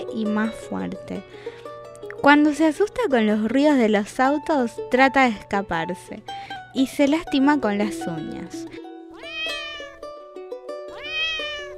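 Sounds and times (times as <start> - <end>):
speech: 0.1 - 1.6, 2.2 - 8.7
kitten meowing: 9.1 - 10.0, 10.9 - 11.7.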